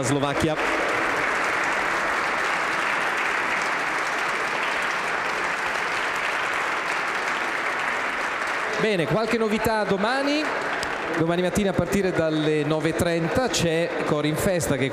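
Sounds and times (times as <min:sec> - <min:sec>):
speech: 0:00.0 - 0:00.8, 0:08.8 - 0:14.9
audience applause for choirs: 0:00.0 - 0:14.9.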